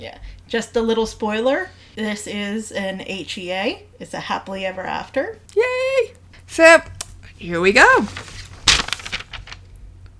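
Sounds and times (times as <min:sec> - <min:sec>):
speech: 0:00.0 - 0:08.3
paper rustling: 0:07.0 - 0:09.9.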